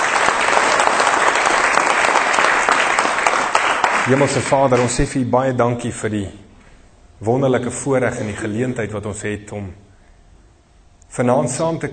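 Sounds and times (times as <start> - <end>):
crowd applauding: 0.0 - 5.0
speech: 4.1 - 6.4, 7.2 - 9.8, 11.1 - 11.9.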